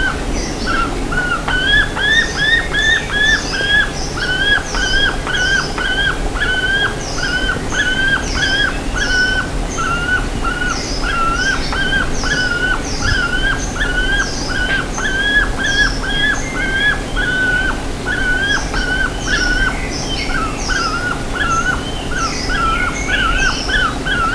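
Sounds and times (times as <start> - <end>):
several birds repeating whistled notes: 0.0 - 24.3.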